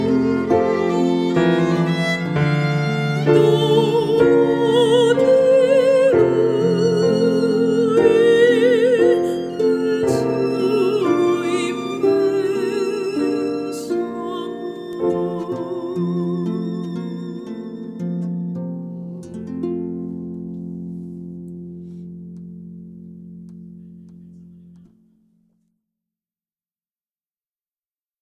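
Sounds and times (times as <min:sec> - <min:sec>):
violin: 0:00.0 - 0:20.5
harp: 0:00.0 - 0:24.9
piano: 0:00.0 - 0:25.4.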